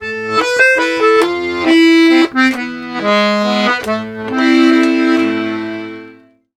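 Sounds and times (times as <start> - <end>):
accordion: 0.0 - 6.5.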